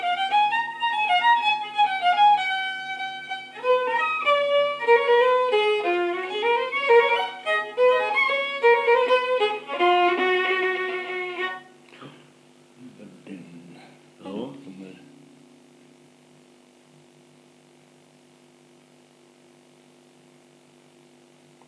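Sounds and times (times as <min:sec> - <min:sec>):
fiddle playing an old folk wedding waltz: 0:00.0 - 0:11.8.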